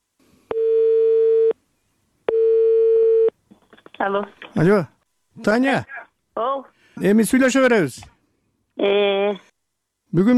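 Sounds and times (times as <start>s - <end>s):
telephone ringback tone while placing a call: 0.5s - 1.6s, 2.3s - 3.3s
speech: 4.0s - 8.1s, 8.8s - 9.5s, 10.1s - 10.3s.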